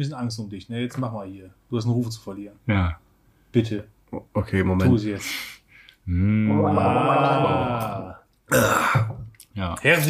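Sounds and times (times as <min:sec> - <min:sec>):
speech: 0:00.0 - 0:10.0
person gargling liquid: 0:06.1 - 0:09.4.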